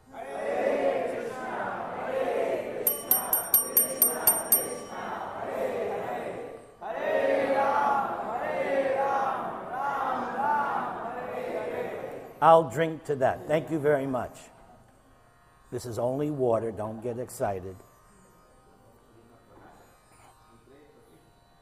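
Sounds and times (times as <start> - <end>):
large crowd chanting a mantra loudly in unison: 0.1 - 2.8, 4.9 - 12.4
ringing metallic strikes: 2.9 - 5.3
speech: 12.4 - 14.5, 15.7 - 17.9.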